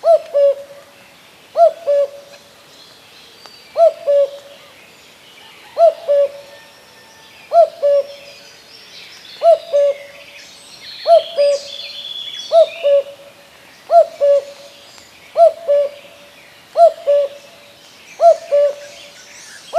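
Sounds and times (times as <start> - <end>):
Common cuckoo calling: 0.0 - 0.8, 1.6 - 2.4, 3.7 - 4.8, 5.4 - 8.4, 9.4 - 10.3, 11.0 - 13.3, 13.9 - 17.6, 18.2 - 19.7.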